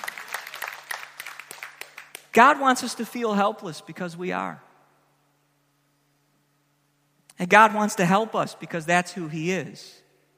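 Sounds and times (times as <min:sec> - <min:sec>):
audience clapping: 0:00.0 - 0:02.4
speech: 0:02.3 - 0:04.7, 0:07.4 - 0:10.0.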